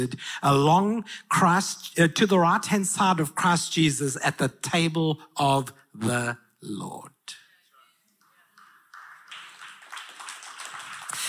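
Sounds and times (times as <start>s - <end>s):
speech: 0.0s - 7.1s
audience clapping from the back: 8.2s - 11.2s.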